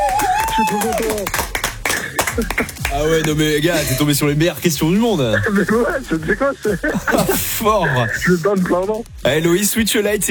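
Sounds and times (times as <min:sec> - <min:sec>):
audience applause: 0:00.0 - 0:04.2
laughter: 0:00.0 - 0:08.9
speech: 0:00.6 - 0:01.5, 0:02.4 - 0:10.2.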